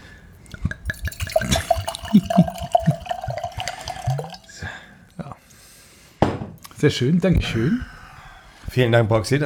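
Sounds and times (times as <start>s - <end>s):
red wine dripping into a glass: 0.3s - 5.3s
glass clinks: 0.5s - 4.5s
speech: 6.8s - 8.0s, 8.8s - 9.4s.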